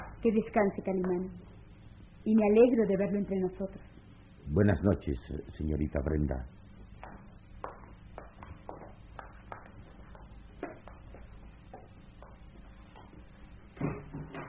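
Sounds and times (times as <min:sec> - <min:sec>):
low steady hum: 0:00.0 - 0:14.4
speech: 0:00.2 - 0:01.5, 0:02.2 - 0:06.6
footsteps tapping: 0:00.8 - 0:01.4, 0:06.7 - 0:14.4.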